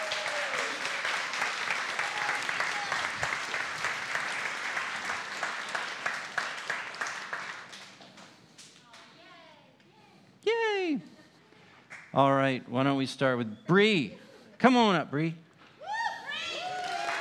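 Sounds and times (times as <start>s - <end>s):
audience applause welcoming children at a gathering: 0.0s - 8.2s, 16.4s - 17.1s
speech: 12.2s - 15.4s.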